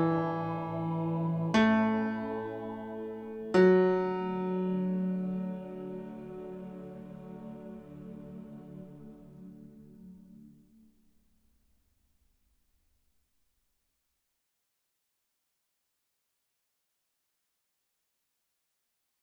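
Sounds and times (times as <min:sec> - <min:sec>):
tenor singing: 0:00.0 - 0:10.2.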